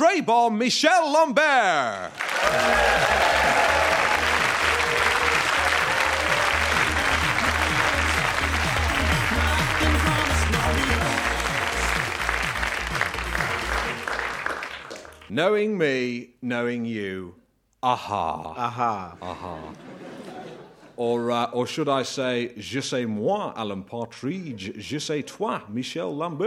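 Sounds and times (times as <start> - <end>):
speech: 0.0 - 3.9, 15.3 - 19.9, 21.0 - 26.4
audience applause: 2.1 - 15.3
laughter: 18.4 - 21.0.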